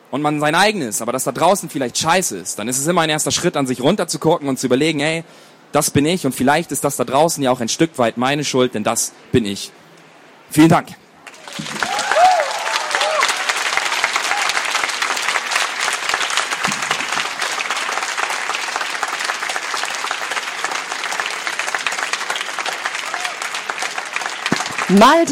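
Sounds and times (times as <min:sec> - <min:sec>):
speech: 0:00.1 - 0:09.8, 0:10.5 - 0:11.0, 0:24.9 - 0:25.2
audience applause: 0:11.2 - 0:25.2.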